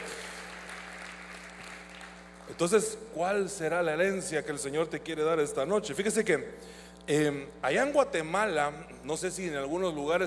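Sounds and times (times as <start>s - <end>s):
audience applause: 0.0s - 2.5s
speech: 2.5s - 10.2s.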